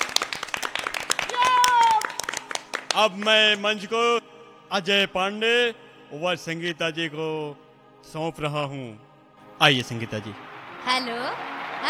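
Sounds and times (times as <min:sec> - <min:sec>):
audience clapping to welcome performers onto a stage: 0:00.0 - 0:03.9, 0:09.4 - 0:11.8
speech: 0:03.0 - 0:11.8.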